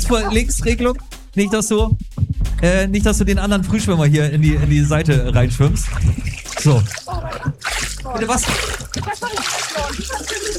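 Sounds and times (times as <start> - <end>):
laughter: 0.0 - 1.6, 6.6 - 10.5
speech: 0.1 - 7.5, 8.1 - 10.1
water splashing as a person slides into a warm 28-degree swimming pool: 5.5 - 10.5.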